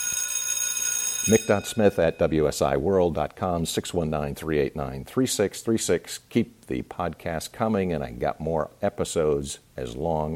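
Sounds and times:
bell ringing: 0.0s - 2.9s
speech: 1.3s - 10.3s.

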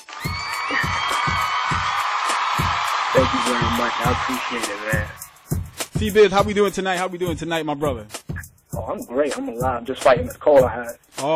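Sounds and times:
applause and cheering: 0.0s - 5.4s
speech: 3.2s - 5.3s, 6.0s - 8.2s, 8.8s - 11.3s.

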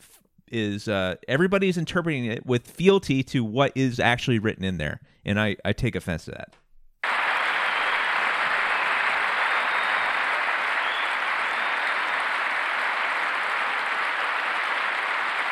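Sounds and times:
speech: 0.5s - 6.6s
audience applause: 7.0s - 15.5s.

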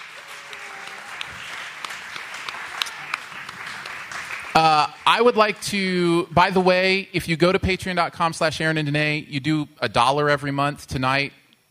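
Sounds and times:
audience applause: 0.0s - 5.3s
speech: 5.2s - 11.4s.

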